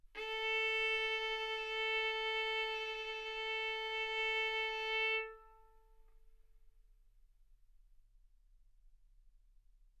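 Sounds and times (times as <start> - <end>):
violin arco on A string: 0.1 - 6.0.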